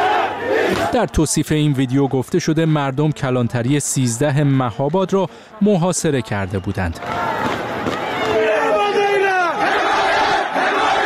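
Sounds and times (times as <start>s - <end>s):
crowd in Mahabad shouting calls for support: 0.0s - 3.2s, 6.5s - 11.0s
speech: 0.9s - 8.0s.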